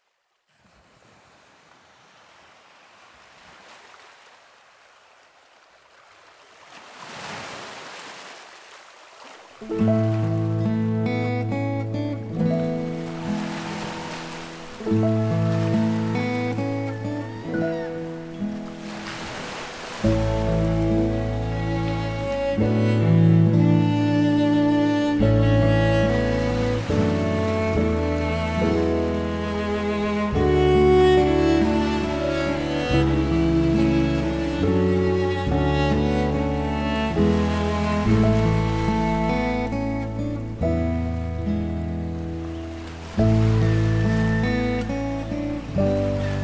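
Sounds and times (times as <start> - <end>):
cello: 9.7 - 18.9, 20.0 - 46.4.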